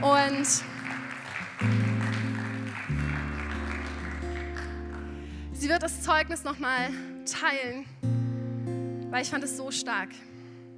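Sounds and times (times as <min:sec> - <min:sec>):
audience applauding: 0:00.0 - 0:05.6
speech: 0:00.4 - 0:00.8, 0:01.6 - 0:02.2, 0:05.8 - 0:08.2, 0:09.1 - 0:10.3.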